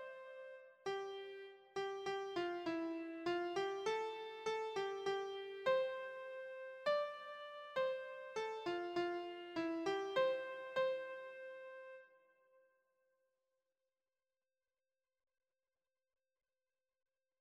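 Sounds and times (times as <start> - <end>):
keyboard christmas music: 0.0 - 12.1.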